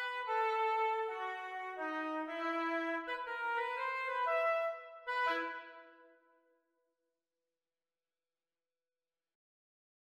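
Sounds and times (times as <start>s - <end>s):
oboe duet practice: 0.0s - 5.8s.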